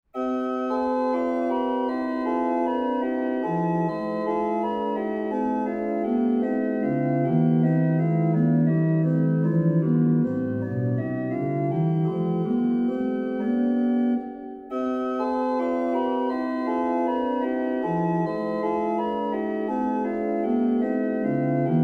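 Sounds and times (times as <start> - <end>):
organ invention in C major: 0.2 - 21.8.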